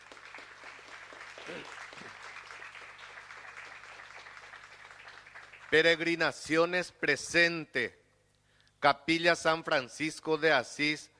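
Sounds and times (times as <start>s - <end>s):
crowd applauding: 0.0s - 6.2s
speech: 1.5s - 2.1s, 5.7s - 8.0s, 8.8s - 11.1s.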